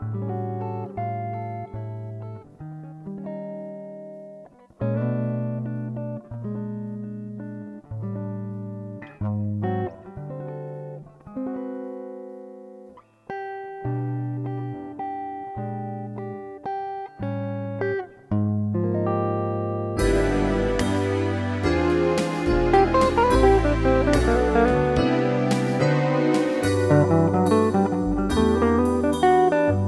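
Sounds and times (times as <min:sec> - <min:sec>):
guitar: 0:00.0 - 0:29.8
backing track: 0:20.0 - 0:29.8.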